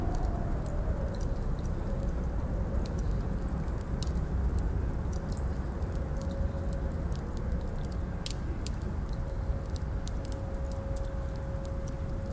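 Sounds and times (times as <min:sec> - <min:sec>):
castle ambience: 0:00.0 - 0:12.3.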